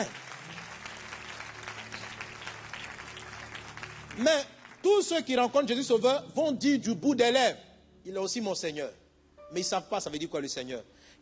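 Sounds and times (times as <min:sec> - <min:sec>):
church congregation applauding acclaiming Jesus: 0:00.0 - 0:06.0
speech: 0:04.2 - 0:11.2.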